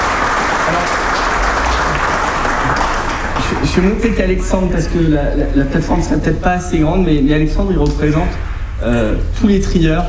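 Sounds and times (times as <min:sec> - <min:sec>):
audience applause: 0:00.0 - 0:04.2
speech: 0:03.8 - 0:10.0.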